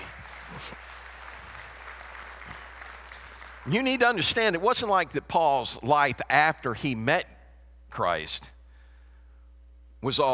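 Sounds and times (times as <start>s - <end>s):
audience applause: 0.0s - 4.3s
speech: 0.6s - 1.0s, 3.6s - 7.3s, 7.9s - 8.6s, 10.0s - 10.3s.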